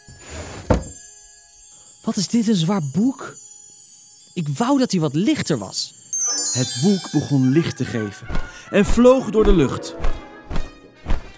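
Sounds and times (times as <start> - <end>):
cabinet door shutting: 0.3 - 1.0
speech: 2.1 - 3.4, 4.4 - 10.2.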